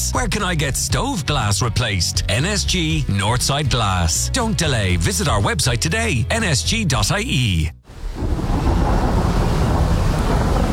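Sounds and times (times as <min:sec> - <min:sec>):
speech: 0:00.1 - 0:07.8
winter mountain wind roaring: 0:07.9 - 0:10.7.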